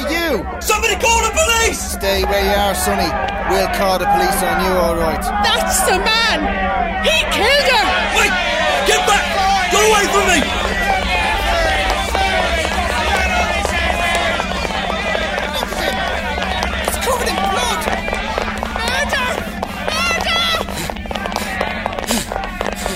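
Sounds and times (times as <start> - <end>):
loud clamour of crowd voices: 0.0 - 22.9
speech: 0.3 - 10.8
running footsteps of a man fleeing through a London street: 0.5 - 22.9
laughter: 0.8 - 22.9.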